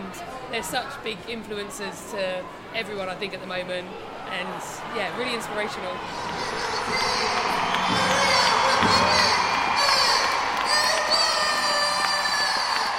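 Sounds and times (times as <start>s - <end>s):
speech: 0.5s - 9.4s
crowd cheering and applause in arena: 4.6s - 12.9s.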